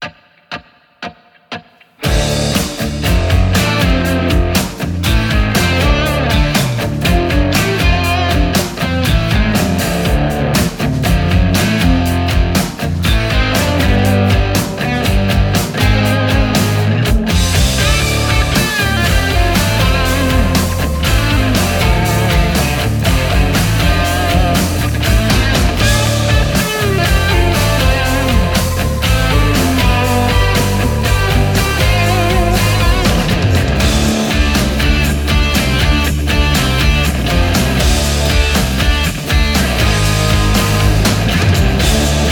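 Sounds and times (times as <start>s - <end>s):
rock music: 0.0s - 42.2s.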